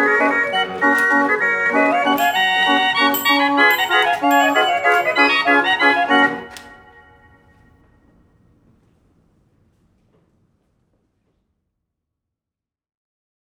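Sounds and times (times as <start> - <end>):
mechanical barrel automata organ playing: 0.4 - 7.0.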